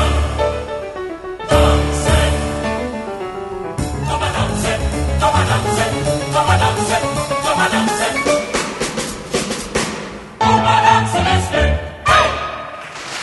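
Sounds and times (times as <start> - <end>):
chamber choir singing: 0.0 - 0.7, 1.5 - 2.8, 4.0 - 8.5, 10.4 - 12.8.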